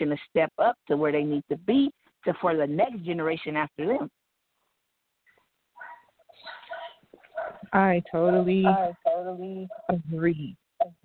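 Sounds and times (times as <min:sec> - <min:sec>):
speech: 0:00.0 - 0:04.2, 0:07.5 - 0:11.0
dog barking: 0:05.8 - 0:07.7.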